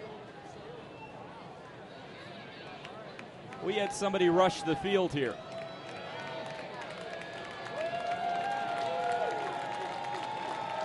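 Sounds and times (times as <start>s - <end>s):
stadium crowd applauding: 2.8s - 10.8s
speech: 3.6s - 5.5s
scattered cheers, shouts and whistles: 3.6s - 10.8s.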